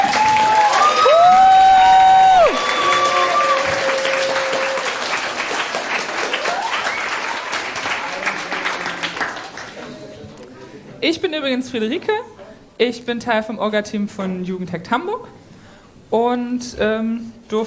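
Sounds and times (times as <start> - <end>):
audience applause: 0.0 - 10.2
speech: 11.5 - 15.4, 16.1 - 17.6.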